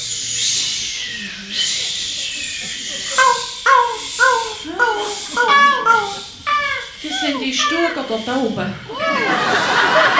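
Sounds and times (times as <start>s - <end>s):
voices imitating waves on a beach: 0.6s - 10.0s
laughter: 1.8s - 7.9s, 8.9s - 10.1s
speech: 7.4s - 9.6s.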